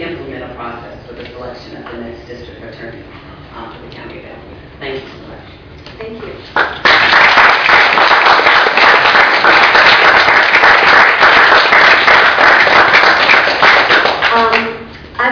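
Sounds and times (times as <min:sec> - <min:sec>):
speech: 0:01.4 - 0:06.6
room full of people applauding: 0:06.5 - 0:14.8.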